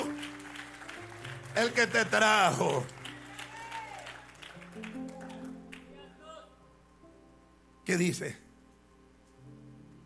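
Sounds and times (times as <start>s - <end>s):
audience applause: 0.0s - 5.9s
speech: 1.6s - 3.0s, 7.9s - 8.4s.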